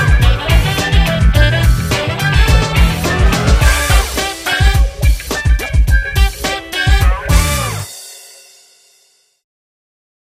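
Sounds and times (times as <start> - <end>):
hip hop music: 0.0 - 7.9.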